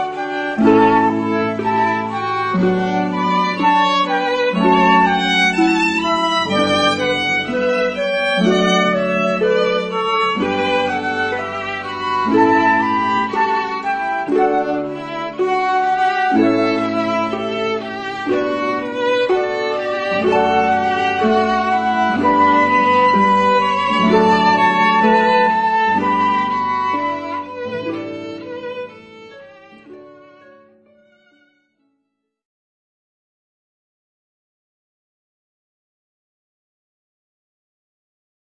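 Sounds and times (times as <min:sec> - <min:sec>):
flute: 0:00.0 - 0:29.3
harp: 0:00.0 - 0:31.6
violin: 0:00.0 - 0:31.9.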